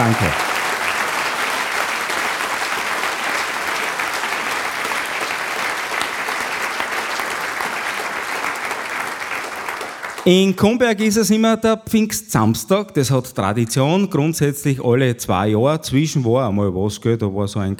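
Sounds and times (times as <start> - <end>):
speech: 0.0 - 0.5, 10.2 - 17.7
hall audience applause: 0.0 - 10.5.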